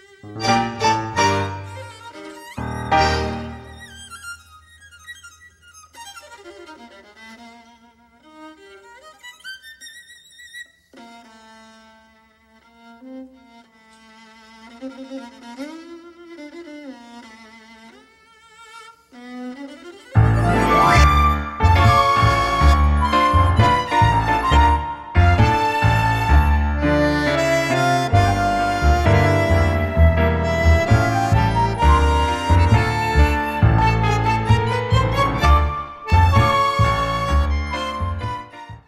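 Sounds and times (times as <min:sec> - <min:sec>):
flute melody: 0:00.3 - 0:05.4, 0:20.2 - 0:38.8.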